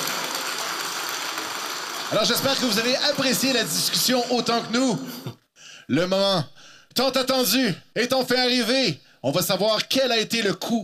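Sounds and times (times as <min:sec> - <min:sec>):
audience applause: 0:00.0 - 0:05.2
speech: 0:02.1 - 0:10.8.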